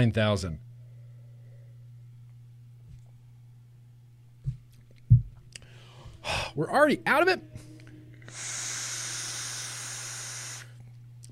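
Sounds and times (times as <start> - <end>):
speech: 0.0 - 0.7, 6.2 - 7.6
faint low hum: 0.0 - 11.3
vape exhale hiss: 8.2 - 10.8.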